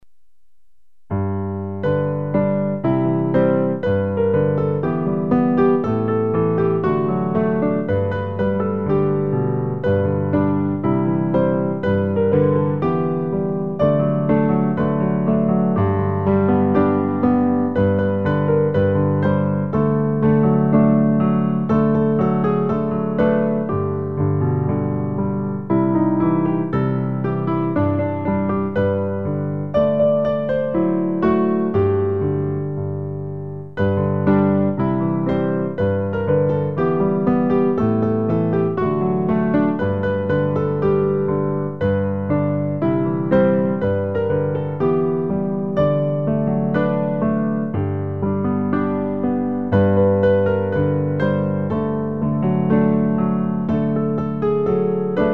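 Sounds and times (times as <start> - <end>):
piano: 0.0 - 55.3.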